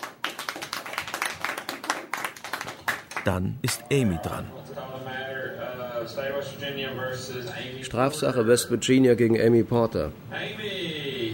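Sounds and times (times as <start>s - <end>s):
audience applause: 0.0s - 3.4s
speech: 3.2s - 4.6s, 6.0s - 10.3s.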